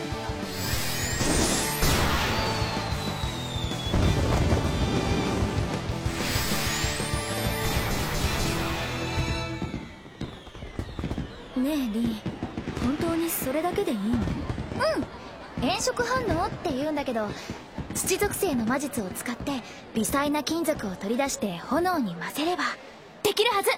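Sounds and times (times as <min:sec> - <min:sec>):
fireworks exploding: 0:00.2 - 0:20.8
rising firework whistles: 0:00.5 - 0:12.9
speech: 0:11.7 - 0:12.3, 0:12.9 - 0:23.7.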